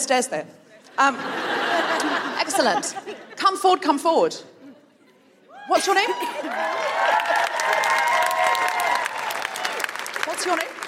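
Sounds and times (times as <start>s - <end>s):
speech: 0.0s - 4.5s, 5.7s - 7.3s, 10.4s - 10.8s
laughter: 0.8s - 3.5s
whoops and shouts: 5.5s - 9.8s
crowd clapping and cheering: 6.0s - 10.8s.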